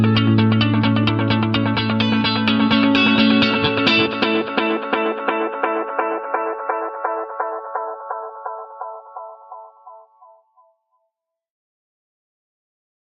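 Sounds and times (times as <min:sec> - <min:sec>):
echoing delay effect: 0:00.0 - 0:10.0.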